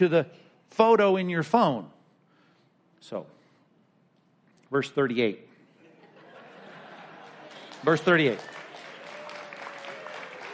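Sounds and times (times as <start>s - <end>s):
speech: 0.0s - 2.0s, 3.0s - 3.4s, 4.7s - 5.5s, 7.8s - 8.5s
laughter: 5.7s - 8.3s
congregation applauding during a sermon: 6.7s - 10.5s.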